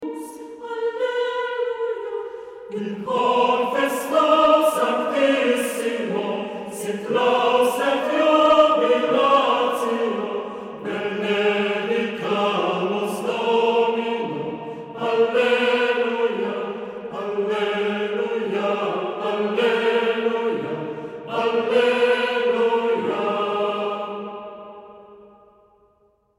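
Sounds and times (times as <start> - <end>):
hymn: 0.0 - 25.7.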